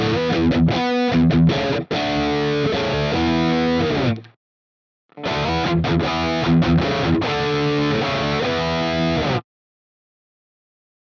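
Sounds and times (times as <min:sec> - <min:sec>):
Ibanez AZ high gain guitar riff: 0:00.0 - 0:04.4, 0:05.2 - 0:09.4.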